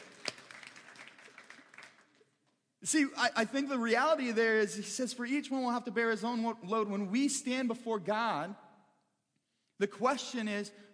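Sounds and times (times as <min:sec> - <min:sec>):
church congregation applauding: 0:00.0 - 0:02.4
speech: 0:02.8 - 0:08.6, 0:09.8 - 0:10.9.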